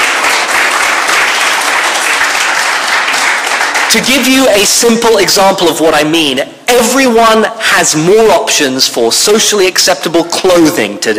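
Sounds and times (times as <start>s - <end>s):
audience applause: 0.0s - 4.2s
speech: 3.9s - 11.1s.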